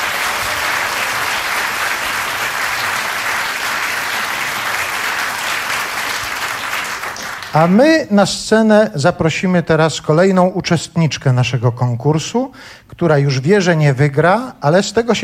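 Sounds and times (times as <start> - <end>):
audience applause: 0.0 - 7.8
speech: 7.6 - 15.2.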